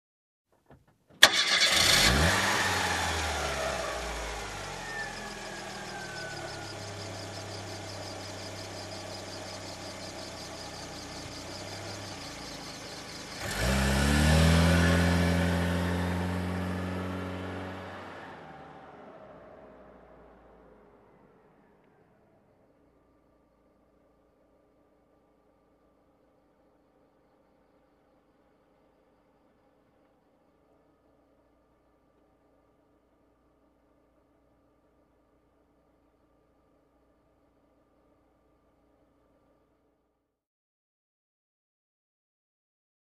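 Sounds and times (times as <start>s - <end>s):
car engine ignition: 1.1s - 23.5s.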